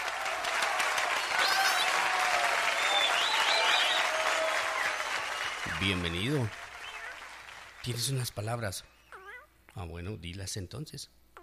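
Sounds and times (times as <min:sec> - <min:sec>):
applause: 0:00.0 - 0:08.6
speech: 0:05.8 - 0:06.6, 0:07.8 - 0:08.9, 0:09.8 - 0:11.2.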